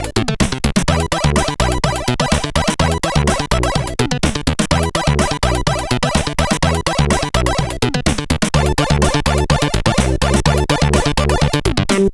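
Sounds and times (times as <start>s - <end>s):
techno music: 0.0s - 12.1s.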